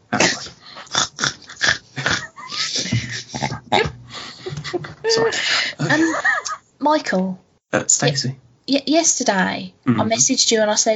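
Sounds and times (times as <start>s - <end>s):
burp: 0.1s - 2.3s, 9.8s - 10.2s
laughter: 1.4s - 6.6s
speech: 6.8s - 10.9s.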